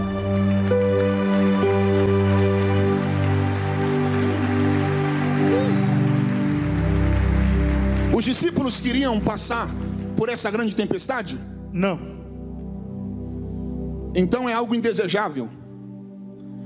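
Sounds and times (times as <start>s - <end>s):
audience applause: 0.2s - 9.6s
speech: 8.3s - 12.1s, 14.1s - 15.6s.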